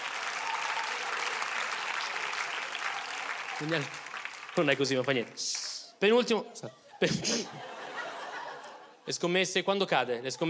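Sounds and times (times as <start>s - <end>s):
audience applause: 0.0s - 5.9s
speech: 3.6s - 4.0s, 4.6s - 7.7s, 9.1s - 10.4s
laughter: 6.1s - 9.2s.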